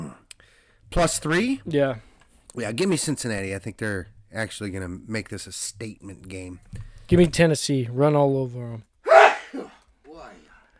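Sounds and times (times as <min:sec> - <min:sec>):
speech: 0:00.9 - 0:08.9
person sneezing: 0:09.1 - 0:10.3.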